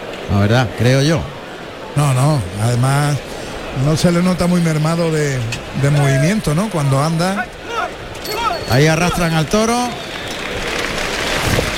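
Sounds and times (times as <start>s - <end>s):
speech: 0.3s - 1.4s, 2.0s - 7.6s, 8.7s - 10.0s
bullring crowd ovation applause: 5.8s - 11.7s.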